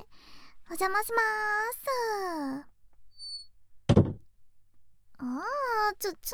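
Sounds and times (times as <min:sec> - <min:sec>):
speech: 0:00.8 - 0:02.7, 0:06.0 - 0:06.3
door shutting: 0:03.9 - 0:04.2.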